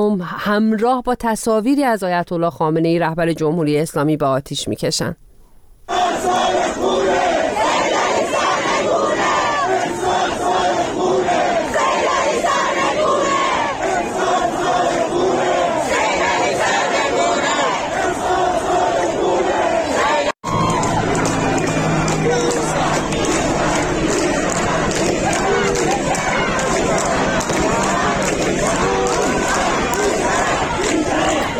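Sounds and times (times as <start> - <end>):
speech: 0.0 - 5.3
large protest crowd chanting slogans in street: 5.9 - 31.5.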